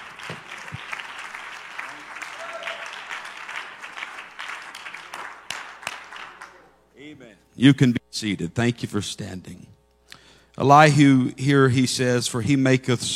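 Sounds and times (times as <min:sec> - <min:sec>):
audience hand clapping: 0:00.0 - 0:06.7
speech: 0:07.6 - 0:09.7, 0:10.6 - 0:13.1.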